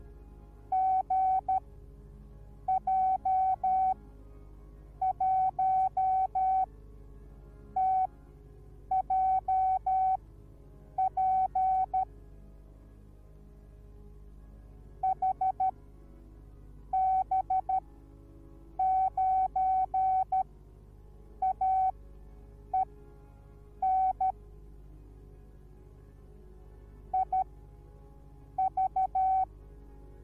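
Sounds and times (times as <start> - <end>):
morse code beeps: 0.7 - 1.6, 2.7 - 4.0, 5.0 - 6.7, 7.8 - 8.1, 8.9 - 10.2, 11.0 - 12.0, 15.0 - 15.7, 16.9 - 17.8, 18.8 - 20.4, 21.4 - 21.9, 23.8 - 24.3, 27.2 - 27.4, 28.6 - 29.5.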